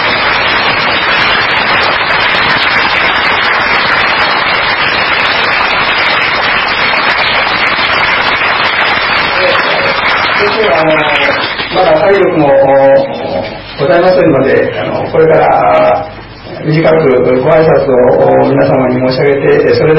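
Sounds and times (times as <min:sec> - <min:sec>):
large crowd applause: 0:00.0 - 0:12.0
speech: 0:10.8 - 0:13.2, 0:13.8 - 0:19.9.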